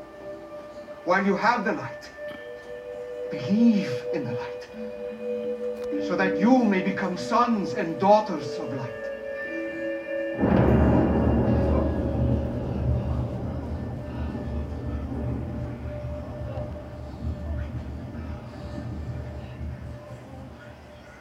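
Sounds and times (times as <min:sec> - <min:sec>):
speech: 0:01.0 - 0:02.2, 0:03.3 - 0:05.4, 0:06.0 - 0:09.0
rumbling thunder: 0:10.4 - 0:20.3.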